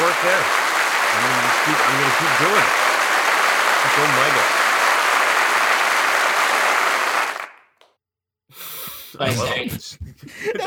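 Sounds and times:
loud crowd applause: 0:00.0 - 0:07.7
speech: 0:00.2 - 0:02.9, 0:03.8 - 0:04.6, 0:09.2 - 0:10.6.

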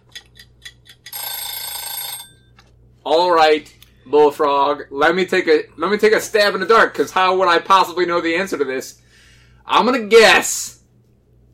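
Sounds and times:
timer sound effect ticks: 0:00.0 - 0:01.5
bright loud electronic timer ring: 0:01.1 - 0:02.6
speech: 0:03.1 - 0:09.0, 0:09.7 - 0:10.8.

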